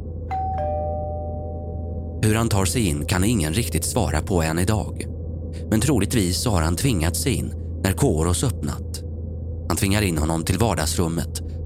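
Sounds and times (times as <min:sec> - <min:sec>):
low steady hum: 0:00.0 - 0:11.6
doorbell chimes: 0:00.3 - 0:02.2
speech: 0:02.2 - 0:09.0, 0:09.7 - 0:11.6.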